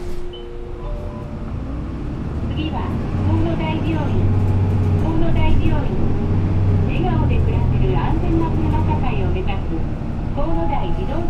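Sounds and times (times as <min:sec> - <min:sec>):
bus pulling away from a stop: 0:00.0 - 0:11.2.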